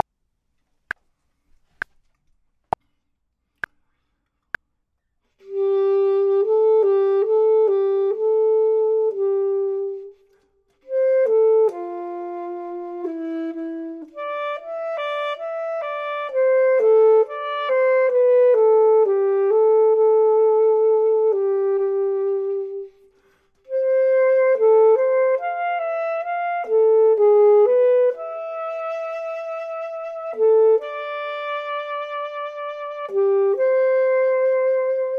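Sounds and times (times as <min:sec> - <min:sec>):
clarinet: 0:05.3 - 0:35.1
saxophone: 0:05.4 - 0:35.1.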